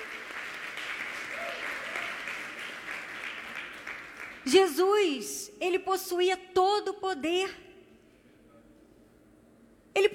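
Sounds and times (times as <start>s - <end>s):
audience applause: 0.0s - 4.4s
speech: 4.5s - 7.6s.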